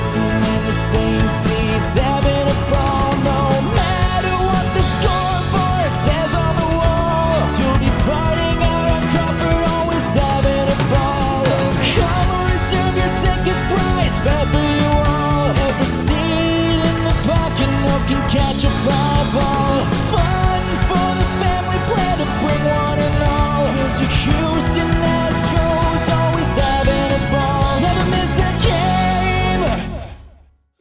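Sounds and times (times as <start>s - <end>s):
acoustic karaoke harmony: 0.0s - 30.2s.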